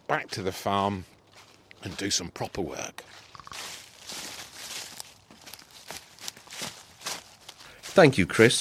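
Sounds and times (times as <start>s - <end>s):
speech: 0.1s - 1.1s, 1.8s - 3.7s, 8.0s - 8.5s
footsteps rustling through fallen leaves: 1.3s - 2.1s, 3.0s - 8.5s.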